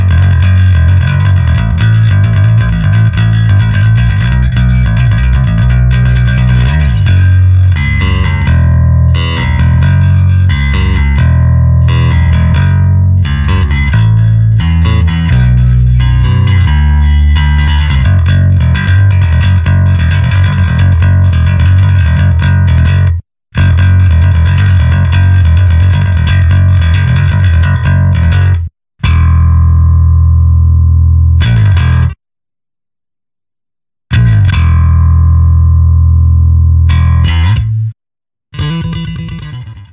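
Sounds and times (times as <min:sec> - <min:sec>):
bass: 0:00.0 - 0:32.2, 0:34.1 - 0:39.9.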